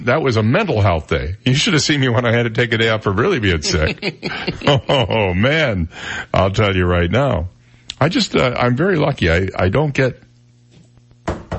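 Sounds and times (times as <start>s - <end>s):
speech: 0.0s - 10.2s
faint low hum: 0.0s - 11.5s
laughter: 3.4s - 5.6s
knocking on wood: 11.2s - 11.5s.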